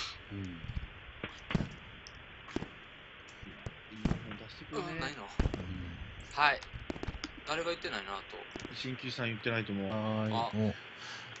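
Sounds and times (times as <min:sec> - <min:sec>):
fireworks going off outside: 0:00.0 - 0:10.4
speech: 0:00.3 - 0:00.7, 0:06.4 - 0:06.7, 0:07.5 - 0:11.3.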